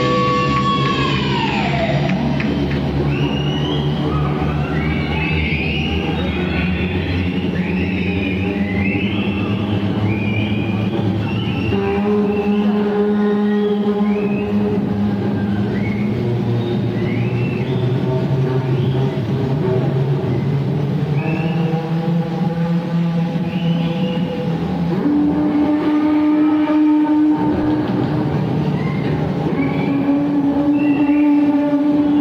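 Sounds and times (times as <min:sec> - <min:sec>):
bass solo: 0:00.0 - 0:32.1.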